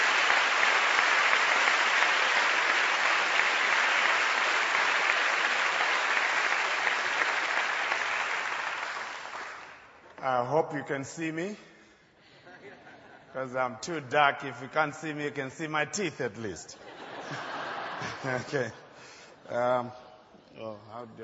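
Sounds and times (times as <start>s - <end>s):
audience applause: 0.0s - 10.0s
speech: 10.2s - 11.7s, 13.4s - 18.8s, 19.5s - 20.0s, 20.6s - 21.2s
laughter: 12.3s - 13.4s, 16.8s - 19.0s.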